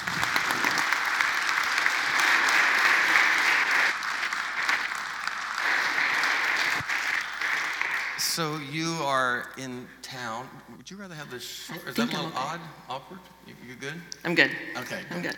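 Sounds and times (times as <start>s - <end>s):
audience applause welcoming a guest on stage: 0.0s - 8.6s
speech: 8.4s - 15.3s.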